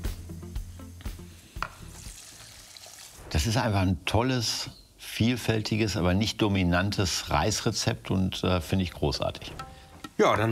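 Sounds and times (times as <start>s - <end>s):
water poured into hot rice pan sizzling: 1.2s - 3.6s
speech: 3.4s - 9.6s, 10.2s - 10.5s.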